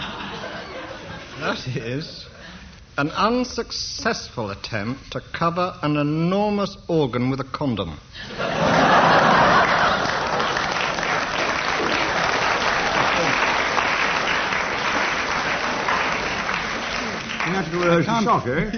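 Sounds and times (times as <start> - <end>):
laughter: 0.0 - 2.3, 8.2 - 14.5
speech: 1.4 - 8.8, 17.7 - 18.7
audience applause: 8.6 - 18.6.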